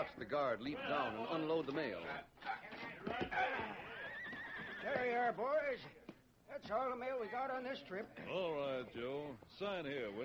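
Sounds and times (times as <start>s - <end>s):
speech: 0.0s - 3.9s, 4.8s - 10.2s
hooves thudding as horses stop: 2.5s - 7.3s
horse whinnying: 3.2s - 5.2s.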